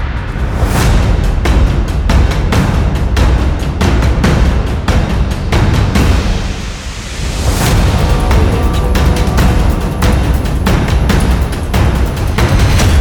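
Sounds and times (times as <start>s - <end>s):
action trailer drum kit percussion: 0.0s - 12.9s.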